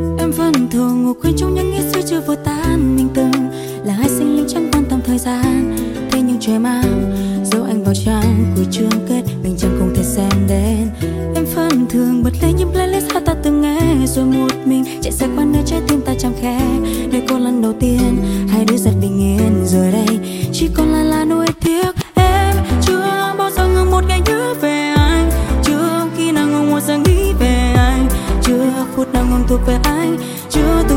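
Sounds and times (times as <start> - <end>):
woman's voice: 0.2 - 30.9.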